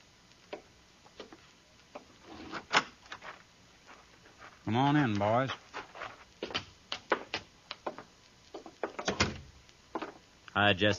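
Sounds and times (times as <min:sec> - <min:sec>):
speech: 0:04.7 - 0:05.6, 0:10.6 - 0:10.9
wooden door being opened: 0:08.6 - 0:10.2.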